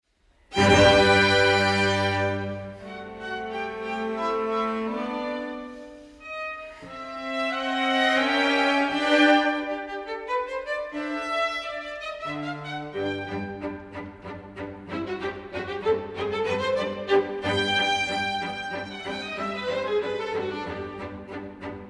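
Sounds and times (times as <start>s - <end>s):
string instruments: 0.2s - 21.8s.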